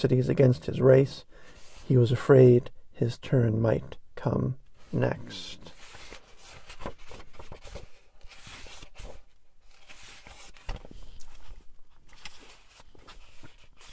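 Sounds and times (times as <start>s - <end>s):
speech: 0.0s - 5.8s
pages turning and shuffled: 5.6s - 13.9s.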